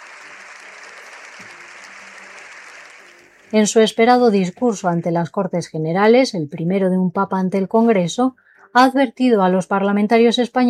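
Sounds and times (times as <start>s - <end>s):
long ovation in parliament chamber: 0.0s - 3.6s
speech: 3.5s - 10.6s.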